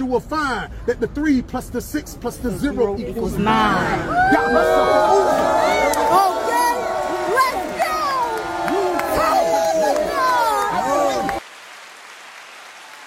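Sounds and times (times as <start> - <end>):
speech: 0.1 - 5.7
large crowd cheering and shouting: 3.2 - 11.4
crowd clapping: 4.3 - 13.0.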